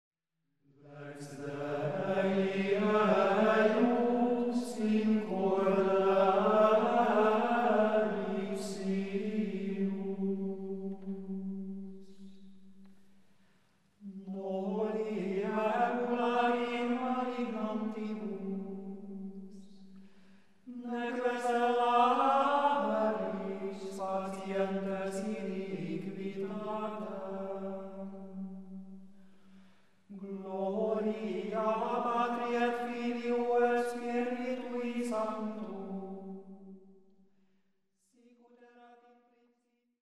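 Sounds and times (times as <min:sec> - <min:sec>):
Gregorian chant: 0:00.8 - 0:12.4, 0:14.0 - 0:19.7, 0:20.7 - 0:28.4, 0:30.1 - 0:36.6.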